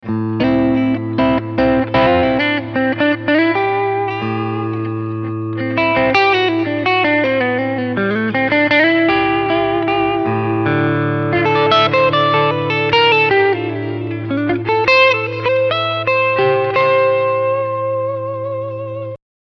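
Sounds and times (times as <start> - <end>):
clean electric guitar on both pickups: 0.0 - 19.2.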